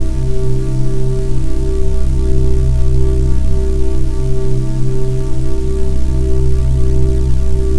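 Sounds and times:
ambient drone: 0.0s - 7.7s.

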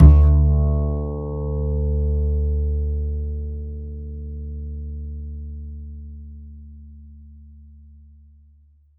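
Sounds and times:
double bass playing D: 0.0s - 8.3s.

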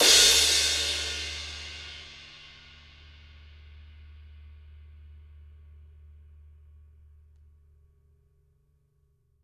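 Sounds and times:
16-inch and 18-inch jazz crash cymbals: 0.0s - 4.8s.

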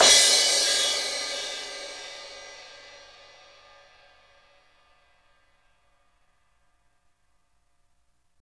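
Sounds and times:
crash cymbal from Roland MV8800: 0.0s - 4.5s.

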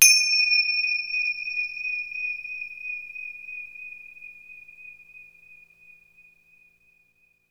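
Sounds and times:
Synclavier percussion finger cymbal: 0.0s - 5.6s.

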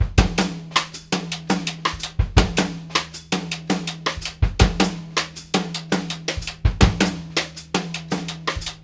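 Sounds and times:
drums in six-eight feel: 0.0s - 8.8s.

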